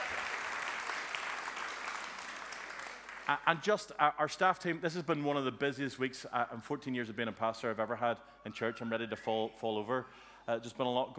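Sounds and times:
audience round of applause: 0.0s - 3.4s
speech: 3.3s - 11.1s.

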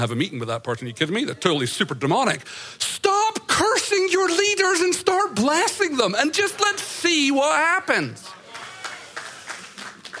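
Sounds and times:
speech: 0.0s - 2.9s, 3.6s - 8.3s
weak scattered audience applause: 8.3s - 10.1s.

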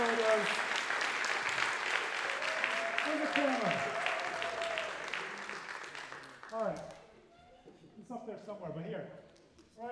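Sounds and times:
audience clapping: 0.0s - 7.2s
speech: 8.4s - 9.8s.

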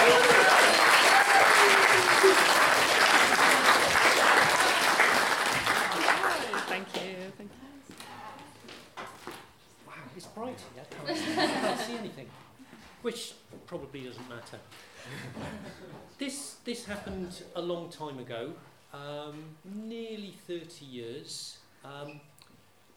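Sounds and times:
audience chuckling: 0.0s - 4.7s, 11.1s - 12.1s
audience applause: 0.0s - 7.0s
speech: 17.1s - 22.3s.

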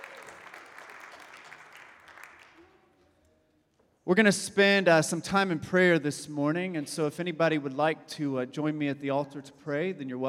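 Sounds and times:
faint applause from a congregation at a Sunday church gathering in Lexington, Kentucky: 0.0s - 3.0s
speech: 4.1s - 10.2s.

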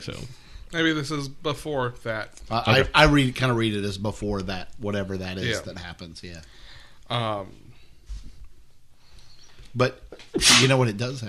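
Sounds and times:
speech: 0.0s - 7.7s, 9.8s - 11.2s
sneeze: 10.2s - 10.8s.

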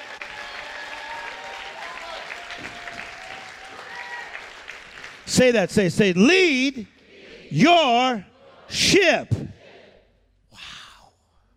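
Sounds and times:
faint voices and cheers: 0.0s - 4.4s
crowd clapping: 0.0s - 5.8s
speech: 5.3s - 6.9s, 7.5s - 9.4s.

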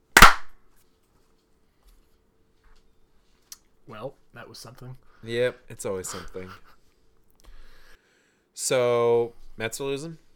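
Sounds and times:
hand clap: 0.0s - 0.6s
speech: 3.9s - 6.8s, 8.6s - 10.2s.

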